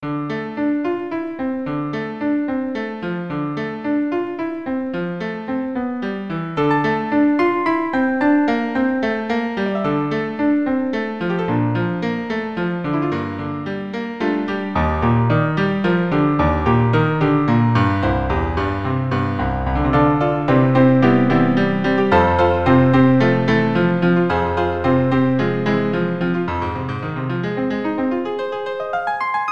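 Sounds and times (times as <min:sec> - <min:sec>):
chiptune piano version piece: 0:00.0 - 0:29.4.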